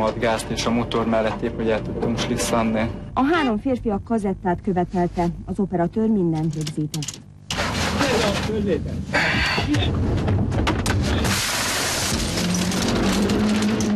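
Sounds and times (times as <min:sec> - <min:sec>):
speech: 0:00.0 - 0:07.2, 0:08.2 - 0:11.2
car windshield smashed by bare hand: 0:10.0 - 0:13.9.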